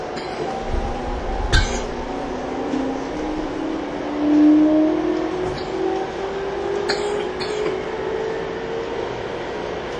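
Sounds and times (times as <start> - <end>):
TWR 70-000 series train inverter whine accelerating on the Saikyō Line: 0.0 - 9.9.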